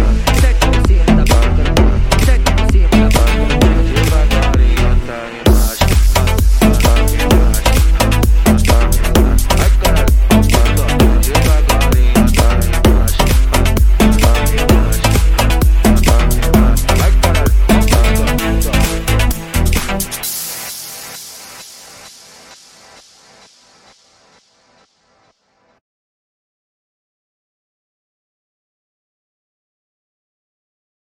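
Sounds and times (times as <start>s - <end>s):
electro funk music: 0.0s - 24.9s.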